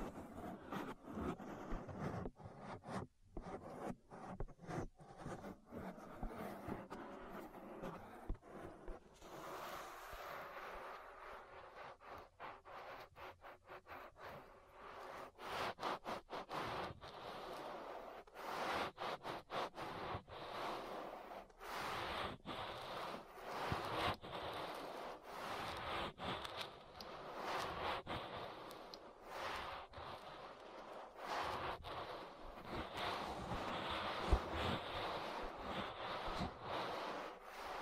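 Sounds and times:
ear massage rubbing and scratching against the microphone: 0:00.0 - 0:37.8.

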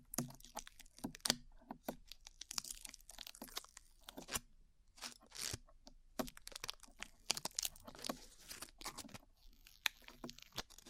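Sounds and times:
glue peeling crackles and snaps: 0:00.2 - 0:10.8.

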